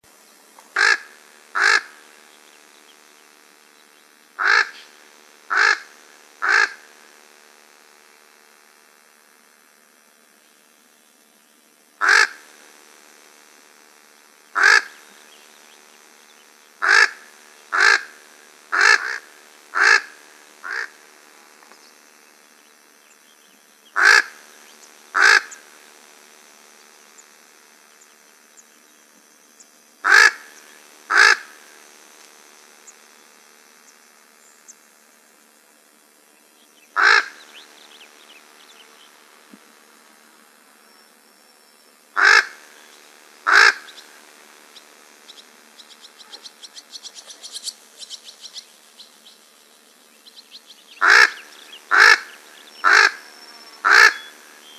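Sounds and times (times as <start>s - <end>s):
corvids calling: 0.8s - 2.0s, 4.4s - 4.8s, 5.5s - 6.8s, 12.0s - 12.4s, 14.6s - 15.0s, 16.8s - 21.0s, 24.0s - 24.4s, 25.2s - 25.6s, 30.0s - 30.4s, 31.1s - 31.4s, 37.0s - 37.4s, 42.2s - 42.6s, 43.5s - 43.9s, 51.0s - 54.4s.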